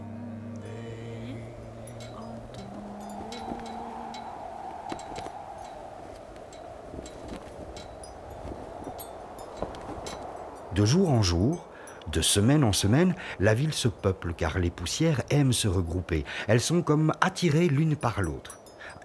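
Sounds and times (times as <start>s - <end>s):
low droning hums: 0.0s - 10.6s
wind blowing continuously through streets: 0.6s - 19.0s
speech: 10.8s - 19.0s.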